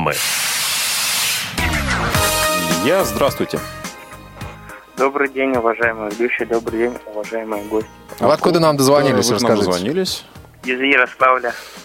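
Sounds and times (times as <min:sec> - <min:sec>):
speech: 0:00.0 - 0:00.5, 0:02.8 - 0:03.9, 0:05.0 - 0:11.8
train emergency brake hissing: 0:00.0 - 0:01.6.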